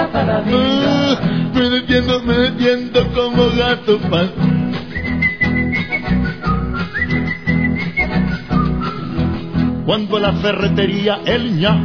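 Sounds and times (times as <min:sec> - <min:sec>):
laughter: 0:00.0 - 0:01.3
speech: 0:00.3 - 0:01.3, 0:01.9 - 0:04.6, 0:10.0 - 0:11.8
person whistling a short lilting tune: 0:04.9 - 0:09.3.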